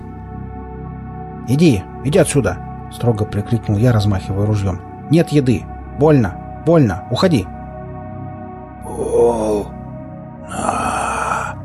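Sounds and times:
speech: 0:01.5 - 0:07.5
voice imitating a rustling rasp from a dead man's rotten throat: 0:08.8 - 0:09.8, 0:10.4 - 0:11.6.

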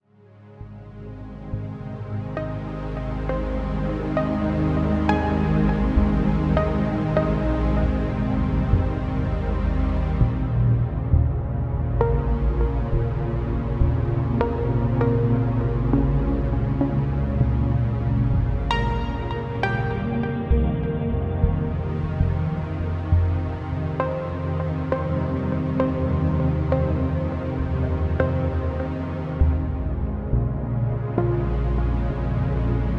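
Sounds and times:
relaxing instrumental music: 0:00.6 - 0:32.9.

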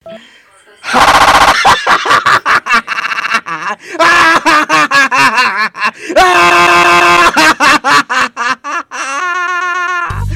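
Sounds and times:
person laughing: 0:00.8 - 0:10.3.

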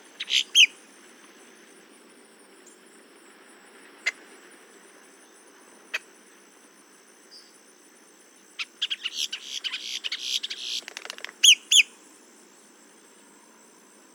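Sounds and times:
boat-tailed grackle Quiscalus major calls: 0:00.2 - 0:00.7, 0:08.6 - 0:11.9.

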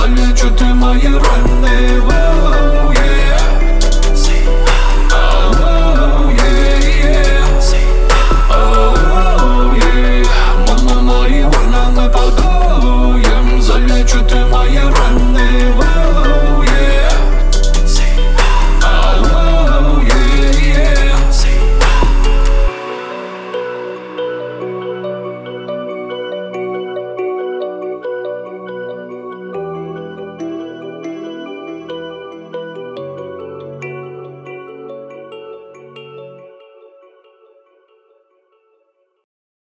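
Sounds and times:
33-37 Hz low bass tone: 0:00.0 - 0:22.7.

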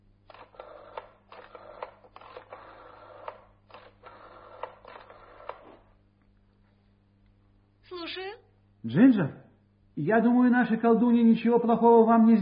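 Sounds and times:
telephone dialing to place a call: 0:00.3 - 0:05.9
speech: 0:08.1 - 0:09.4, 0:10.0 - 0:12.4.

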